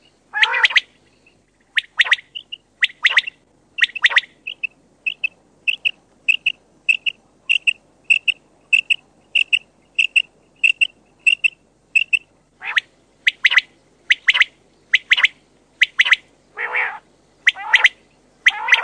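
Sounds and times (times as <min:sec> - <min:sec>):
Common quail calling: 0:00.0 - 0:18.8.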